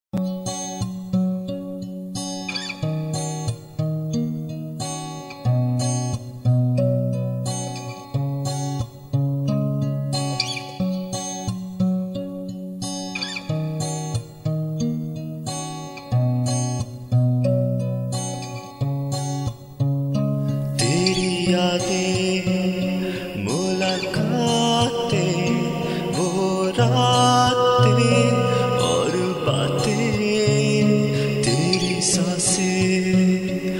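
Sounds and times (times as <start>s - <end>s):
acoustic music: 0.2s - 33.7s.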